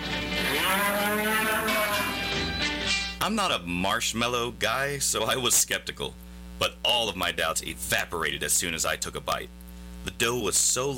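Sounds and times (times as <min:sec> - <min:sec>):
cattle mooing at a bull and female sale on a ranch near Crawford, Oklahoma: 0:00.2 - 0:02.4
speech: 0:03.2 - 0:10.9.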